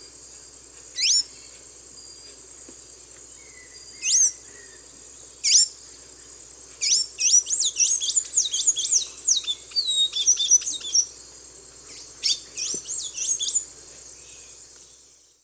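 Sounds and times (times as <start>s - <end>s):
Thraupis episcopus calls and song in the Eastern Lowlands of South America: 3.3s - 11.2s, 11.8s - 15.4s.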